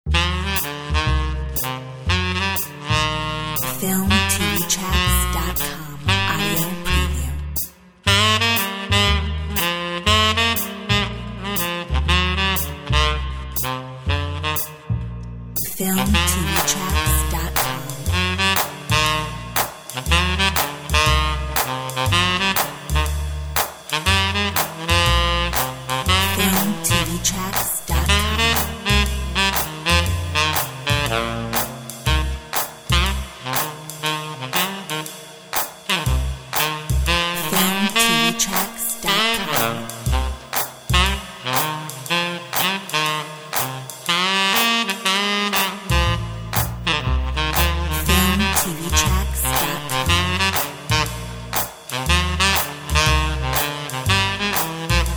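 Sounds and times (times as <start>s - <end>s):
swing music: 0.1s - 55.1s.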